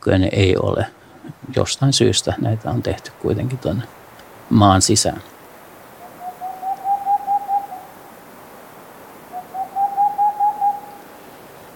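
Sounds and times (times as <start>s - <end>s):
speech: 0.0s - 5.4s
owl hooting: 5.6s - 11.4s.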